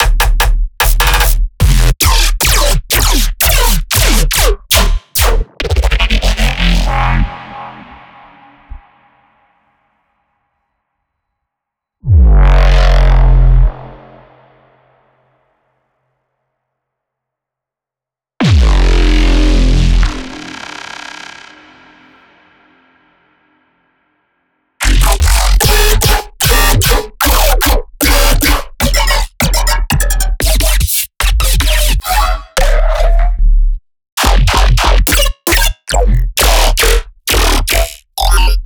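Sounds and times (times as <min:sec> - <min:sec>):
bass stabs: 0:00.0 - 0:09.3, 0:12.0 - 0:14.3, 0:18.4 - 0:20.5, 0:24.8 - 0:38.6.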